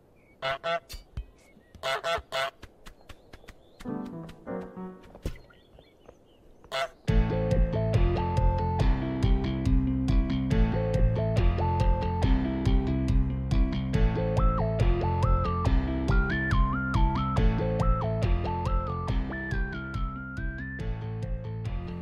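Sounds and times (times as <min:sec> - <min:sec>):
goose honking: 0:00.4 - 0:00.9, 0:01.8 - 0:02.6, 0:06.7 - 0:07.0
loud music with a steady beat: 0:07.1 - 0:21.9.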